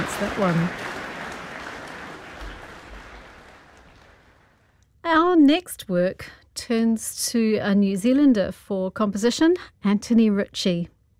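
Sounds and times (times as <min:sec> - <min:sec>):
concert audience applause: 0:00.0 - 0:04.5
speech: 0:00.2 - 0:00.8, 0:05.5 - 0:11.0.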